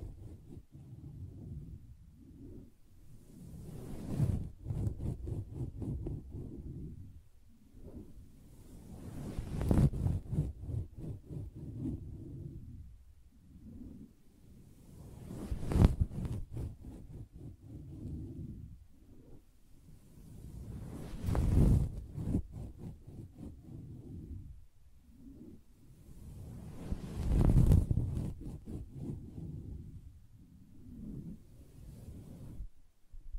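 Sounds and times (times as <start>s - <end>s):
tapping and scratching on a fabric surface: 0.0s - 1.8s, 3.7s - 7.0s, 9.0s - 12.6s, 15.2s - 18.6s, 20.9s - 24.5s, 26.8s - 29.9s
bright swelling scratch: 0.0s - 7.1s, 7.7s - 12.8s, 14.8s - 19.4s, 20.1s - 30.0s.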